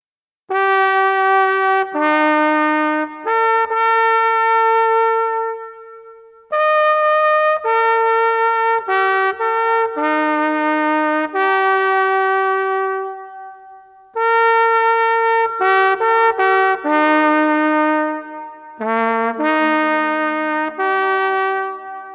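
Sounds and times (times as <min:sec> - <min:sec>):
trumpet call: 0:00.5 - 0:22.1.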